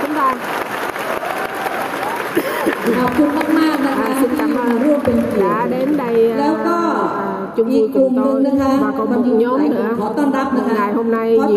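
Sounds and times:
audience round of applause: 0.0 - 6.6
speech: 0.2 - 0.6, 2.9 - 11.5.

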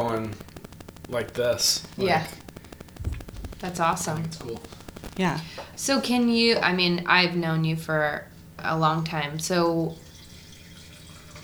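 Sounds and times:
speech: 0.0 - 0.5, 1.1 - 2.5, 3.6 - 10.0
wine being poured: 10.0 - 11.4.

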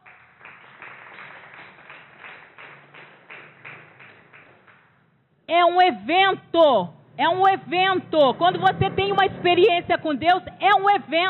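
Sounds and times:
crowd clapping in a steady rhythmic beat: 0.0 - 5.1
speech: 5.5 - 11.2.

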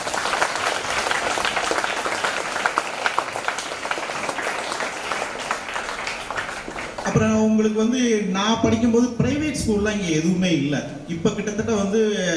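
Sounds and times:
audience applauding at a school centenary celebration: 0.0 - 7.2
speech: 7.1 - 12.3.

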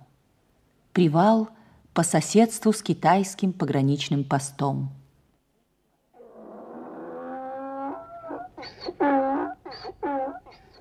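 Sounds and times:
speech: 1.0 - 5.0
donkey braying: 6.2 - 10.8.

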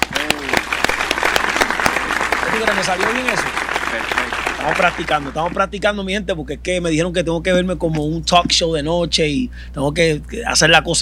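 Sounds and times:
audience applause: 0.0 - 5.6
speech: 2.6 - 10.9.

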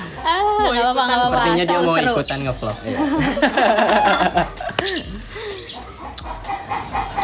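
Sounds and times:
speech: 0.2 - 5.2
laughter: 1.1 - 7.2
chicken clucking: 4.8 - 7.2.

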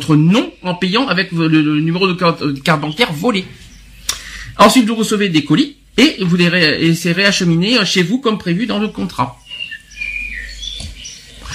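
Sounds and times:
birds chirping: 0.0 - 11.5
speech: 0.1 - 3.6, 4.6 - 9.4.

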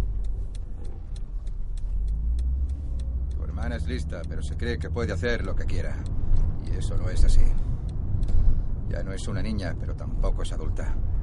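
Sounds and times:
faint clicks: 0.0 - 8.6
car engine and road noise: 0.0 - 11.2
speech: 3.7 - 7.7, 8.9 - 11.1.

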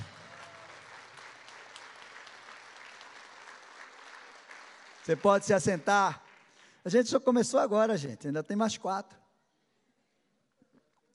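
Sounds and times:
audience applauding: 0.0 - 6.8
speech: 5.0 - 6.2, 6.8 - 9.2.

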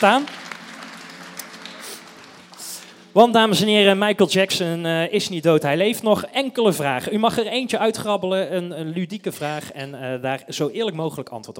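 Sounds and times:
speech: 0.0 - 0.4, 3.2 - 11.5
audience applause: 0.0 - 3.1.

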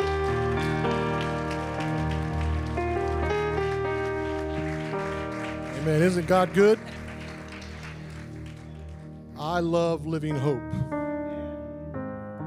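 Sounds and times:
audience clapping: 0.0 - 9.6
sustained organ-like chords: 0.0 - 12.4
speech: 5.9 - 7.0, 9.5 - 10.8.

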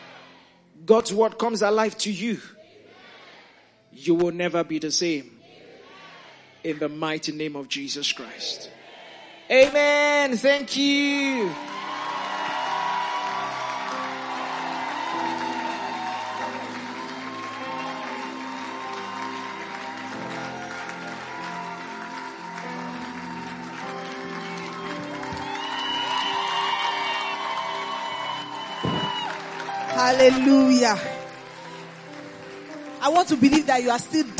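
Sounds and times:
speech: 0.8 - 2.6, 4.0 - 5.4, 6.6 - 8.8, 9.5 - 11.7, 30.2 - 31.1, 33.1 - 34.3
audience clapping and cheering: 8.2 - 34.3.

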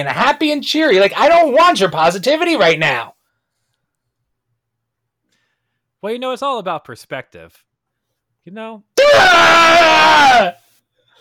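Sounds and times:
speech: 0.0 - 3.2, 6.0 - 7.7, 8.4 - 10.6
goat screaming: 9.0 - 10.6.

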